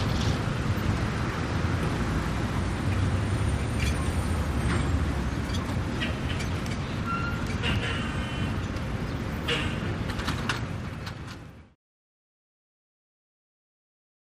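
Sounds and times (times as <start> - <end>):
cars passing by in a busy city: 0.0 - 11.6.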